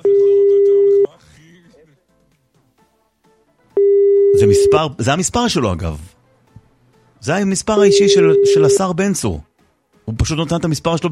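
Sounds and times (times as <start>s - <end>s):
telephone tone while dialing a number on air: 0.0s - 1.1s, 3.8s - 4.8s, 7.8s - 8.8s
speech: 4.5s - 6.2s, 7.2s - 9.5s, 10.1s - 11.1s.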